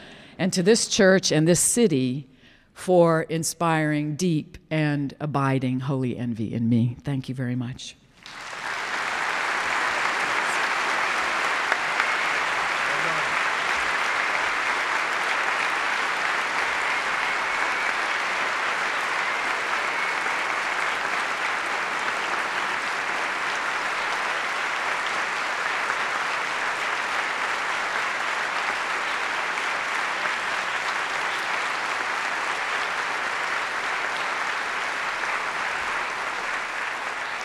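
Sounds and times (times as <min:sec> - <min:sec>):
speech: 0:00.4 - 0:08.4
large audience applause in a packed church sanctuary: 0:08.2 - 0:37.4.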